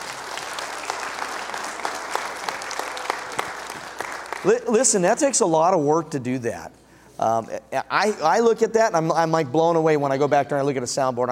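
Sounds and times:
audience applause: 0.0 - 4.6
speech: 4.4 - 11.3.

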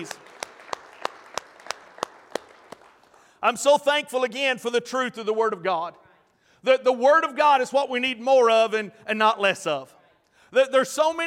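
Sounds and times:
speech: 0.0 - 0.3, 3.4 - 6.0, 6.6 - 11.2
audience hand clapping: 0.0 - 3.4.

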